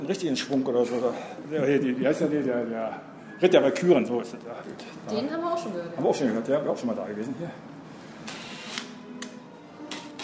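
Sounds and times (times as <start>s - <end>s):
speech: 0.1s - 7.7s
power drill driving screws into a wooden frame: 8.3s - 8.9s, 9.9s - 10.2s.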